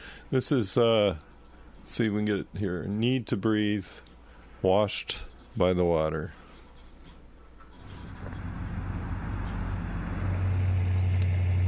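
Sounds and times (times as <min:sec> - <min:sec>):
speech: 0:00.3 - 0:01.3, 0:01.9 - 0:06.4
old car driving around: 0:07.8 - 0:11.6.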